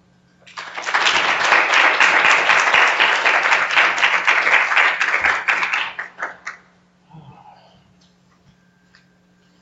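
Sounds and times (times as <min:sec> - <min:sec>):
audience applause welcoming a speaker at the Pratt Library in Baltimore: 0:00.5 - 0:06.6.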